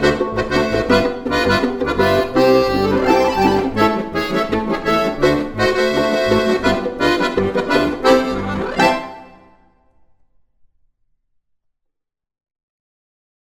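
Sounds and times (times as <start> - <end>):
polka music: 0.0 - 9.8.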